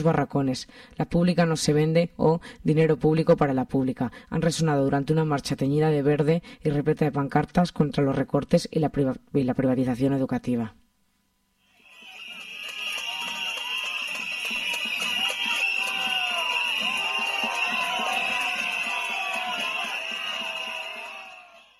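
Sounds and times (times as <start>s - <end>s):
speech: 0.0s - 10.8s
protesters whistling at Azcón during an education march in Huesca: 11.7s - 21.7s.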